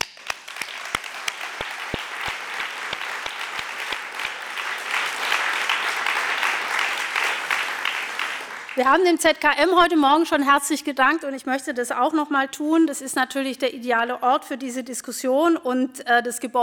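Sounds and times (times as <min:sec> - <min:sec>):
audience applause: 0:00.0 - 0:09.0
speech: 0:08.8 - 0:16.6.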